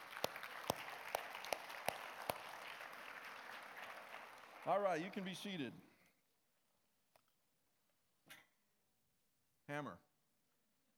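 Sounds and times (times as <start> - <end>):
faint audience applause: 0.0 - 5.1
speech: 4.6 - 5.9, 9.7 - 10.1.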